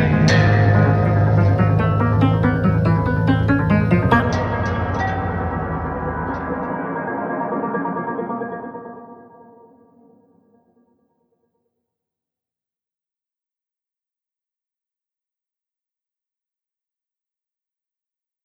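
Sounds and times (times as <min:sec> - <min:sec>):
piano: 0:00.0 - 0:10.1.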